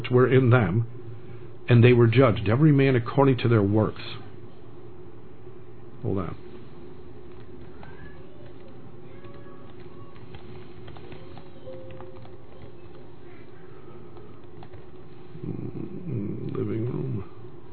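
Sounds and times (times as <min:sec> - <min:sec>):
speech: 0:00.1 - 0:01.0, 0:01.7 - 0:04.3, 0:06.0 - 0:06.4
typing on a computer keyboard in a living room: 0:07.3 - 0:13.4, 0:14.0 - 0:15.1
pigeon-like cooing: 0:15.3 - 0:17.3.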